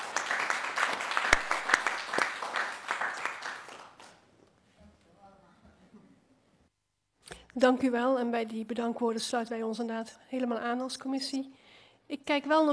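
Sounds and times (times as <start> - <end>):
applause: 0.0 - 4.3
speech: 7.6 - 12.7.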